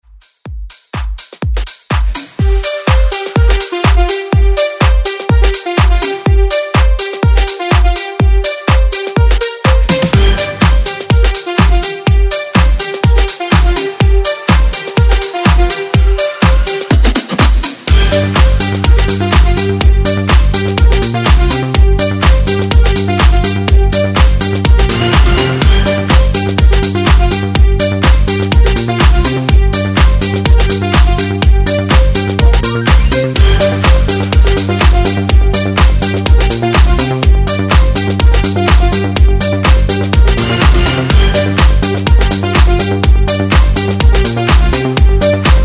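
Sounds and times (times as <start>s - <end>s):
house music: 0.0s - 45.6s.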